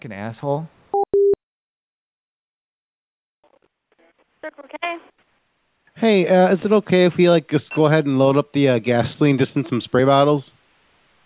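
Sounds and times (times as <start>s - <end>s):
speech: 0.0s - 0.8s, 4.4s - 5.0s, 6.0s - 10.5s
phone busy tone after hang-up: 1.0s - 1.4s.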